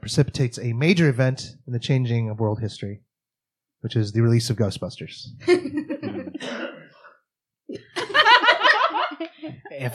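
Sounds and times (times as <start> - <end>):
speech: 0.0 - 3.1, 3.8 - 6.8, 9.5 - 9.9
laughter: 5.5 - 6.4, 7.8 - 9.8
loud cough: 6.2 - 7.1.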